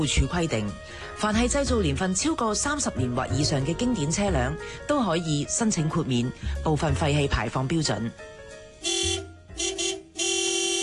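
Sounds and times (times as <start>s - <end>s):
speech: 0.0s - 9.2s
car horn honking in Hong Kong: 8.8s - 10.8s.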